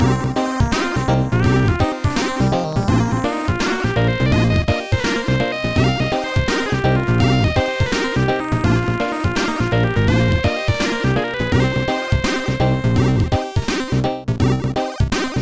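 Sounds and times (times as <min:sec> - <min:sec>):
chiptune music: 0:00.0 - 0:15.3.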